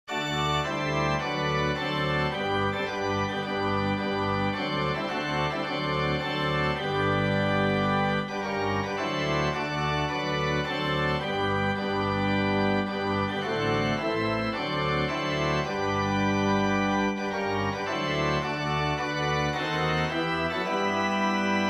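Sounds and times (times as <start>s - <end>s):
organ: 0.1s - 21.6s.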